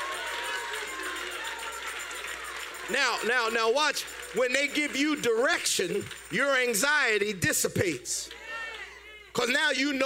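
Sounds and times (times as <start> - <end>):
audience clapping hands: 0.0 - 7.4
speech: 2.9 - 8.4, 9.4 - 10.0.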